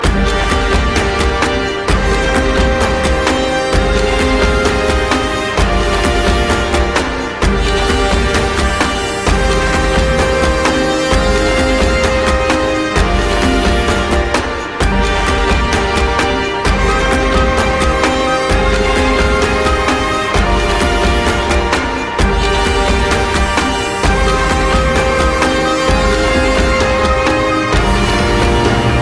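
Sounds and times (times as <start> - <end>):
instrumental music: 0.0 - 29.0.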